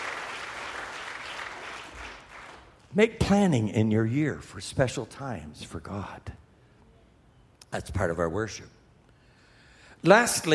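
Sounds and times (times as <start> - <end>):
audience clapping hands: 0.0 - 2.9
speech: 2.9 - 6.4, 7.7 - 8.8, 10.0 - 10.5.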